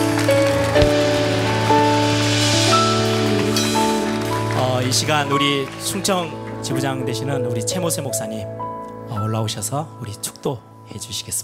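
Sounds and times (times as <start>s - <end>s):
audience applause: 0.0s - 7.3s
sustained keyboard chords: 0.0s - 10.9s
speech: 5.0s - 8.7s, 9.3s - 11.4s.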